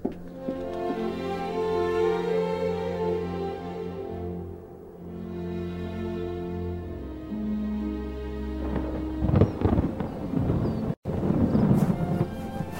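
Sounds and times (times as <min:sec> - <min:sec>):
storm wind outside: 0:00.0 - 0:12.7
storm thunder outside: 0:08.6 - 0:12.7.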